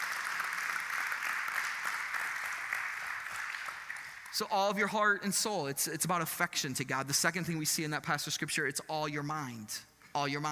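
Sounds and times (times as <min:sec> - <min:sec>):
audience clapping hands in praise: 0:00.0 - 0:04.5
speech: 0:04.4 - 0:10.5.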